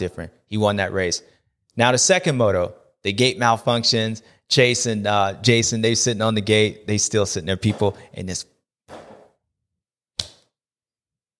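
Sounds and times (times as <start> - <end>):
speech: 0.0 - 8.5
hand slapping skin while swatting a fly: 10.2 - 10.6.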